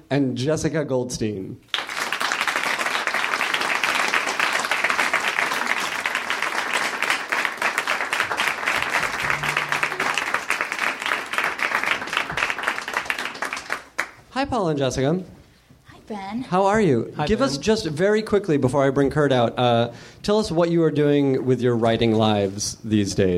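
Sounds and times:
speech: 0.1s - 1.8s, 14.4s - 15.4s, 16.1s - 23.3s
audience applause: 1.7s - 14.1s.

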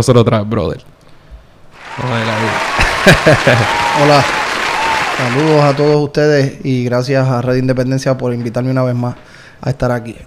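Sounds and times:
speech: 0.0s - 0.9s, 2.0s - 4.5s, 5.2s - 10.2s
laughter: 1.8s - 5.9s
applause: 1.8s - 6.0s.

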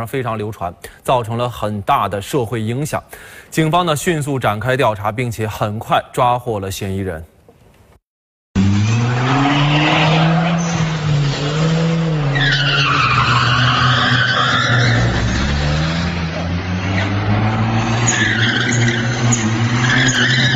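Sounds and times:
speech: 0.0s - 7.3s
yellow sports car engine roaring: 8.6s - 20.5s
yellow sports car tires screeching while drifting in Lanzhou's Central Square: 8.6s - 20.5s.

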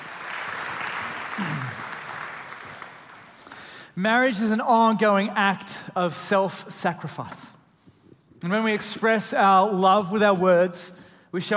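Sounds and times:
audience applause: 0.0s - 3.4s
speech: 4.0s - 7.6s, 8.4s - 11.5s.

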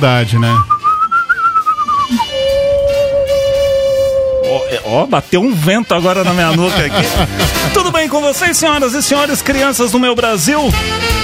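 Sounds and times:
speech: 0.0s - 0.8s, 2.1s - 2.3s, 4.6s - 11.2s
tremulous human whistling: 0.2s - 5.1s
laughter: 6.0s - 8.6s.

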